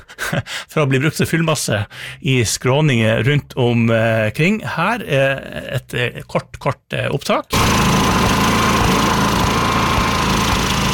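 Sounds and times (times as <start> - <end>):
speech: 0.3 - 7.9
power generator running: 7.5 - 10.9.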